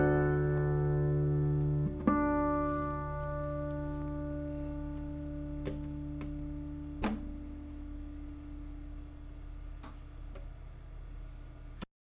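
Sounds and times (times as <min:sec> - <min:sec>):
nylon-string classical guitar playing classical music: 0:00.0 - 0:09.6.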